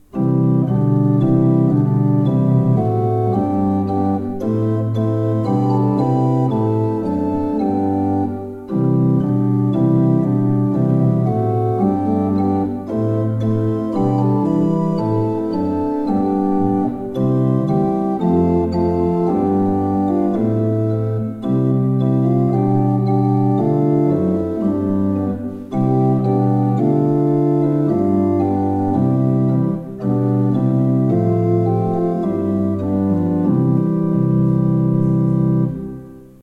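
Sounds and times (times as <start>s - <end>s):
pipe organs: 0.0s - 36.4s.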